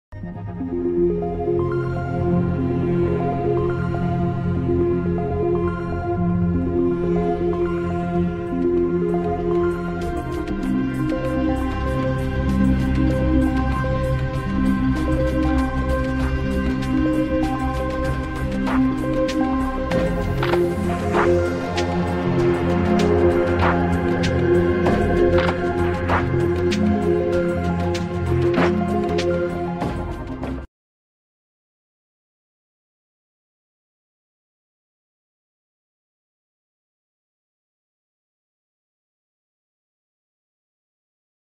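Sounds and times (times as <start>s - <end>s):
cosmic music: 0.1s - 30.7s.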